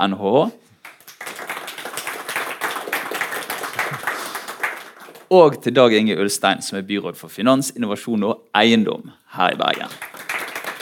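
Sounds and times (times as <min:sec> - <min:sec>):
speech: 0:00.0 - 0:00.7, 0:05.3 - 0:10.1
small crowd applause: 0:00.9 - 0:05.3, 0:09.8 - 0:10.7.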